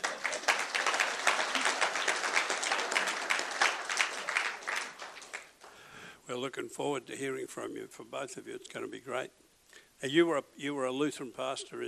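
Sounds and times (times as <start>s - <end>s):
audience applause: 0.0s - 5.6s
speech: 6.4s - 9.4s, 10.0s - 11.8s.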